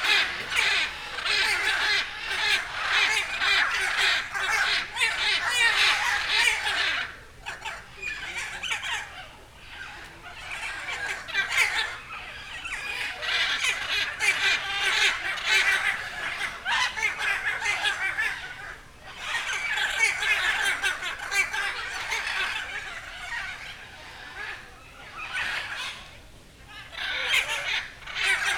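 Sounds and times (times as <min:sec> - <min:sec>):
blue and yellow and green and red macaws calling in a bird park: 0:00.0 - 0:28.5.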